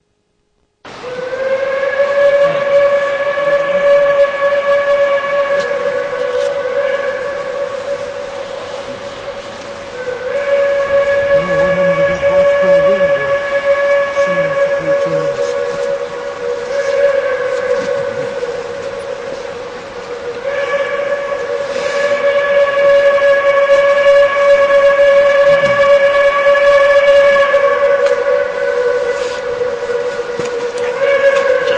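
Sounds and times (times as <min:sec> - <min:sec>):
steam whistles: 0:00.9 - 0:31.7.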